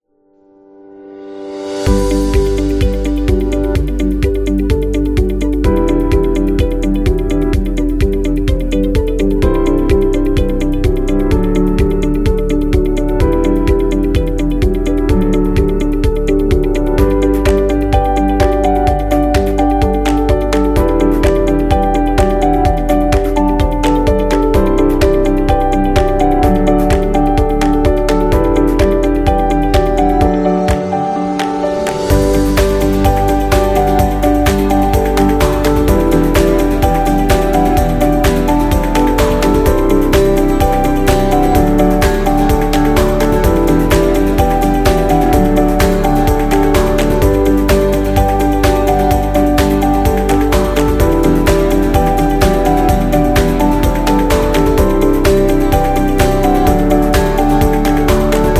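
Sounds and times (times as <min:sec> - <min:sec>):
cinematic corporate music: 0:01.4 - 0:58.5.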